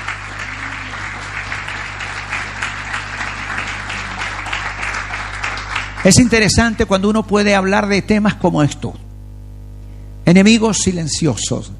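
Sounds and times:
audience applauding: 0.0s - 6.6s
speech: 6.0s - 9.0s, 10.3s - 11.7s.

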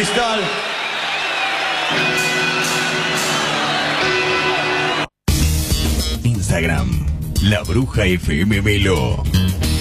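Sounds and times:
speech: 0.0s - 0.7s, 1.9s - 2.2s, 6.5s - 9.7s
audience applause and cheering for a performing act: 0.0s - 5.2s.

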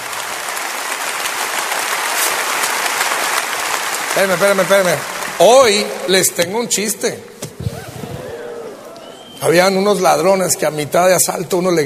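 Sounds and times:
audience applauding: 0.0s - 6.4s, 7.7s - 9.7s
speech: 4.2s - 7.4s, 9.4s - 11.8s.

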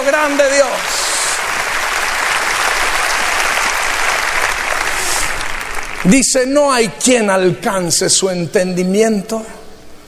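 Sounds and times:
audience applauding: 0.0s - 6.6s
speech: 0.1s - 1.0s, 6.0s - 9.6s.

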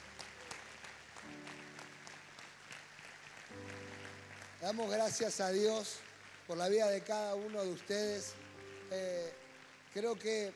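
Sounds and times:
church audience applauding: 0.0s - 10.5s
speech: 4.6s - 9.4s, 10.0s - 10.5s.

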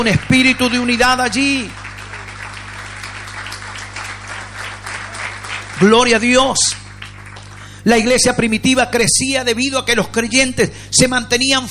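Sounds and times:
speech: 0.0s - 1.8s, 5.8s - 6.8s, 7.8s - 11.6s
audience applause: 0.0s - 8.1s.

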